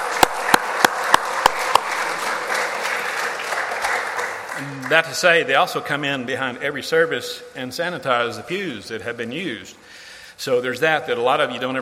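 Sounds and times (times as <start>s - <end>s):
round of applause: 0.0s - 5.2s
speech: 4.9s - 11.8s.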